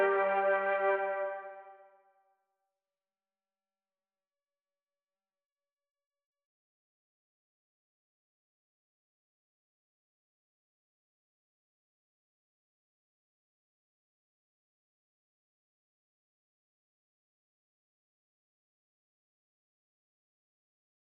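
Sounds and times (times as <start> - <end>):
Mellotron flute sounds: 0.0 - 1.7.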